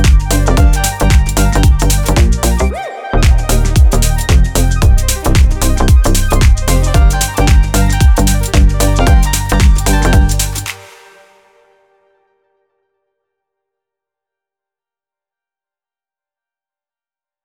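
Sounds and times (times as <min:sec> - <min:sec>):
deep house music: 0:00.0 - 0:11.6.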